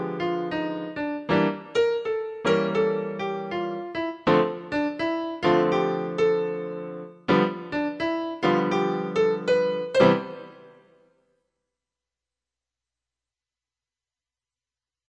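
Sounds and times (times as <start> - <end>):
piano: 0.0 - 11.3.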